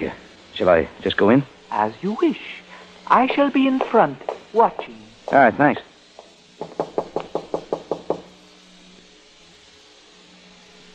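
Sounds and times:
speech: 0:00.0 - 0:05.9
knocking on a door: 0:06.6 - 0:08.3.

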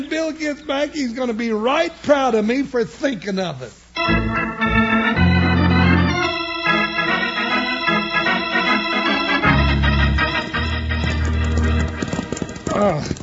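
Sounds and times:
speech: 0:00.0 - 0:04.4, 0:12.8 - 0:13.2
loud musical score: 0:04.0 - 0:12.6
horse hooves clip-clopping while riding: 0:10.2 - 0:13.2.

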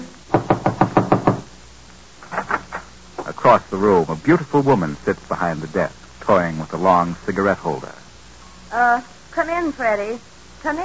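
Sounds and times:
knocking on a door: 0:00.3 - 0:01.5
speech: 0:03.4 - 0:08.0, 0:08.7 - 0:10.8.

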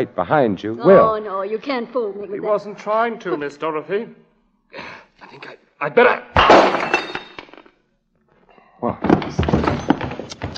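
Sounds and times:
speech: 0:00.0 - 0:07.1, 0:08.8 - 0:10.0
bottle striking a person's head: 0:06.4 - 0:07.4.

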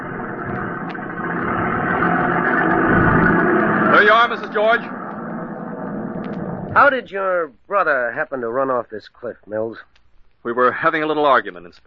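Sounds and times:
old battered car engine running: 0:00.0 - 0:07.2
speech: 0:04.3 - 0:05.0, 0:06.8 - 0:11.8.

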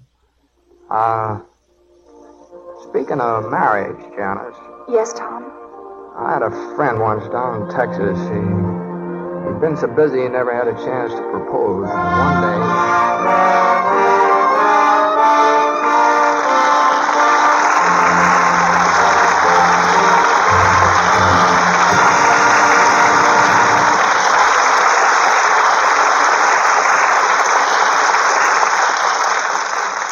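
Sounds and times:
speech: 0:00.9 - 0:01.5, 0:03.0 - 0:05.6, 0:06.2 - 0:08.6, 0:09.6 - 0:14.8
audience applause: 0:12.7 - 0:30.1.

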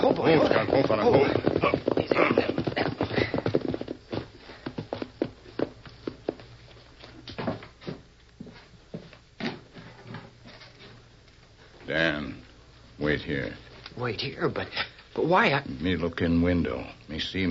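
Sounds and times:
horses' hooves clip-clopping as riders ride toward a house: 0:00.0 - 0:10.7
speech: 0:00.2 - 0:02.5, 0:14.2 - 0:17.4.

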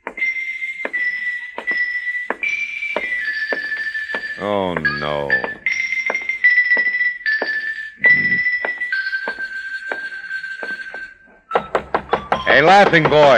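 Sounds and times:
high ringing tone: 0:00.8 - 0:11.2
speech: 0:04.4 - 0:05.6, 0:12.5 - 0:13.3
knocking on a door: 0:11.6 - 0:13.3.

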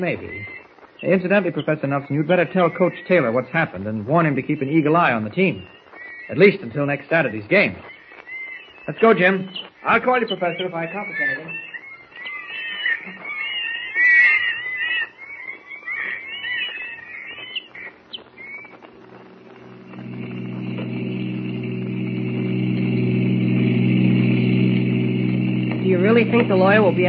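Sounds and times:
speech: 0:00.0 - 0:07.9, 0:08.8 - 0:11.6, 0:26.3 - 0:27.0
high wavering squeals: 0:07.9 - 0:27.0
car engine rumbling as it drives and pulls up: 0:18.9 - 0:27.0.

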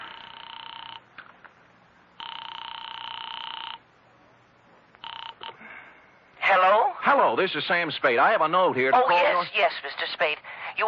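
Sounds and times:
telephone line ringing: 0:00.0 - 0:01.1, 0:02.2 - 0:03.9, 0:05.0 - 0:05.6
speech: 0:07.1 - 0:10.8.

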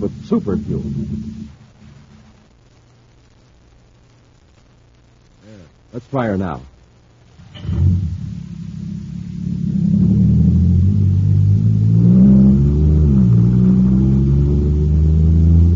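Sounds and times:
supercharged jet cycle engine revving and accelerating: 0:00.0 - 0:01.9, 0:07.6 - 0:15.7
speech: 0:00.3 - 0:01.5, 0:05.9 - 0:06.7.

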